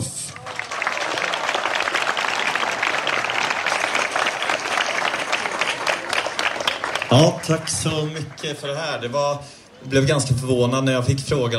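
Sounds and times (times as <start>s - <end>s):
audience applause: 0.0s - 9.1s
speech: 7.1s - 11.5s.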